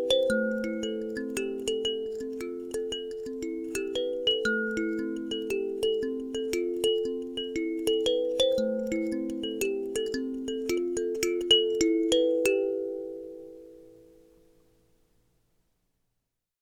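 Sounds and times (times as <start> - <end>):
kalimba playing in A minor: 0.0 - 14.2.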